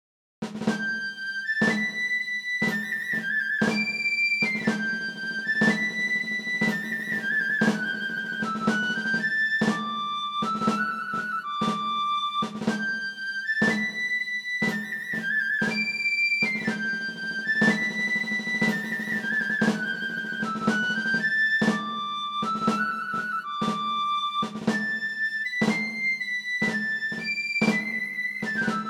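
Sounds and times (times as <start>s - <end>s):
march music: 0.6s - 28.8s.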